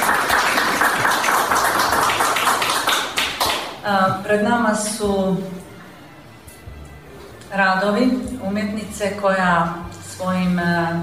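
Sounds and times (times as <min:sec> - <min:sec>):
audience applause at a festival event: 0:00.0 - 0:03.8
speech: 0:04.3 - 0:05.7, 0:07.5 - 0:11.0.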